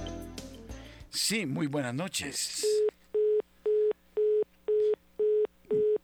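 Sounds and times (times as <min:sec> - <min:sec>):
speech: 0:01.3 - 0:02.9
telephone busy tone as a call fails to connect: 0:02.7 - 0:06.0.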